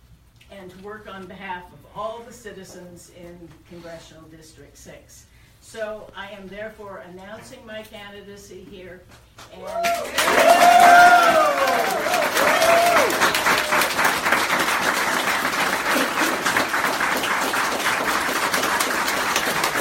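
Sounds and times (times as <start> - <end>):
speech: 0.6 - 13.5
crowd cheering: 9.6 - 19.8.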